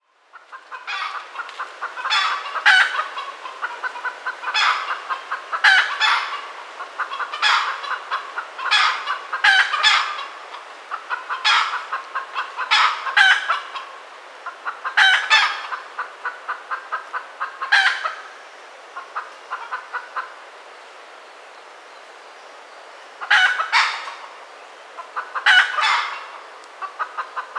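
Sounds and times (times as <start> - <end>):
Red junglefowl soft clucks: 0.3 - 18.2, 25.0 - 27.5.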